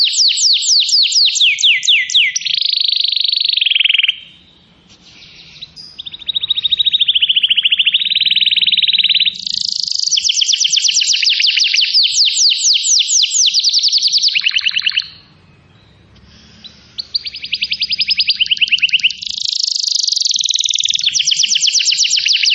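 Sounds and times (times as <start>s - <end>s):
Atlantic canary trilling: 0.0s - 22.5s.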